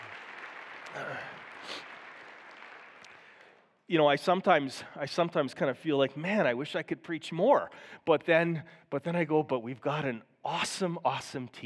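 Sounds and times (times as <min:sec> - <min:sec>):
audience applause: 0:00.0 - 0:03.5
speech: 0:01.0 - 0:01.9, 0:03.9 - 0:11.6.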